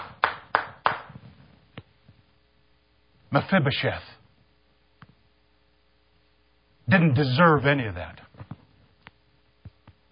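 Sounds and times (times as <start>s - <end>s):
hand claps: 0.0s - 1.2s
speech: 3.3s - 4.1s, 6.9s - 8.2s.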